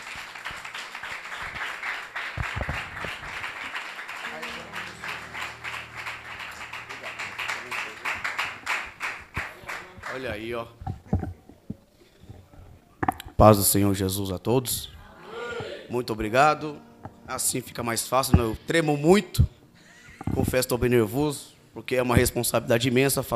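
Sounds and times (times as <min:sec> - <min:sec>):
church audience applauding: 0:00.0 - 0:10.6
speech: 0:10.2 - 0:10.8, 0:13.4 - 0:15.0, 0:15.9 - 0:19.6, 0:20.4 - 0:23.3.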